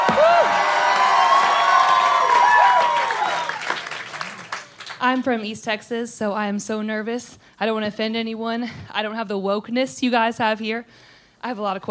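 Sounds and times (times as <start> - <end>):
crowd cheering and shouting: 0.0 - 3.8
applause: 0.0 - 5.1
speech: 5.1 - 11.8.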